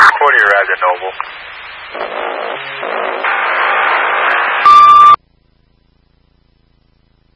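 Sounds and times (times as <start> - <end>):
speech: 0.1 - 3.4
end-of-life alarm beeping: 4.6 - 5.2.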